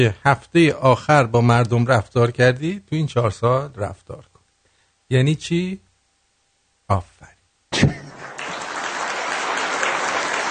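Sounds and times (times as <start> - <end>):
speech: 0.0 - 4.3, 5.1 - 5.8, 6.9 - 7.1
audience clapping: 8.0 - 10.5.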